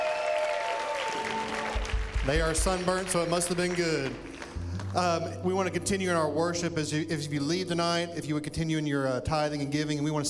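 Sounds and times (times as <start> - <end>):
audience clapping for returning teenagers: 0.0 - 5.1
speech: 2.3 - 4.3, 4.9 - 10.2.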